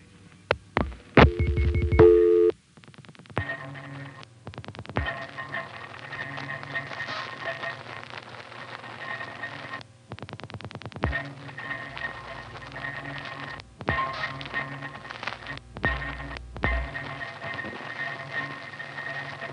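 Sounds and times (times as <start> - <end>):
steady hiss of telephone line noise: 0.0 - 19.5
operator intercept Q tone: 1.2 - 2.6.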